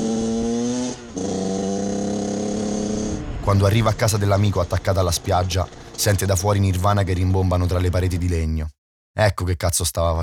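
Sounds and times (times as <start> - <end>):
moped engine starting and speeding off: 0.0 - 7.9
speech: 3.5 - 10.2.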